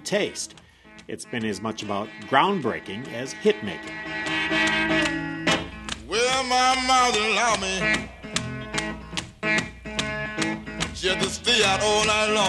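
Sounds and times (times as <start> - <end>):
man singing in an early Detroit blues recording: 0.0 - 3.8, 6.0 - 8.5, 10.8 - 12.4
sharp plucked guitar strikes: 0.0 - 12.4
speech: 0.1 - 5.2, 6.4 - 8.2, 11.0 - 12.4.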